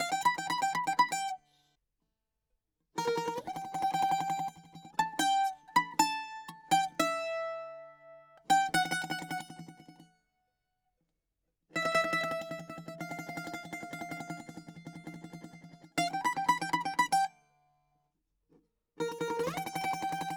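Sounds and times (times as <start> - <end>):
bouzouki: 0.0 - 1.4, 3.0 - 10.1, 11.8 - 17.4, 19.0 - 20.3.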